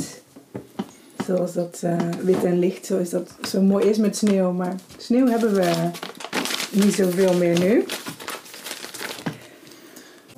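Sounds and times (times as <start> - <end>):
speech: 1.3 - 8.0
paper page turning: 5.2 - 9.4.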